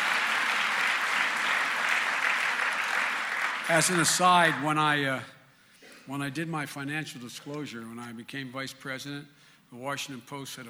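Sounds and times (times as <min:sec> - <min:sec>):
audience applause: 0:00.0 - 0:05.0
speech: 0:03.7 - 0:05.4, 0:06.1 - 0:10.6.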